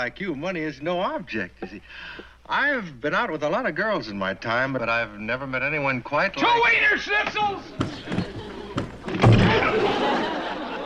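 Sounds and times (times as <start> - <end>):
speech: 0.0 - 8.2
door banging as someone goes through it: 7.2 - 10.2
laughter: 7.6 - 10.8.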